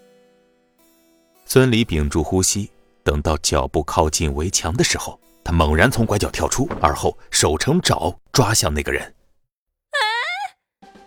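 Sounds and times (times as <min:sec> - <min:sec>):
speech: 0:01.5 - 0:09.2
older woman's scream: 0:10.0 - 0:10.6.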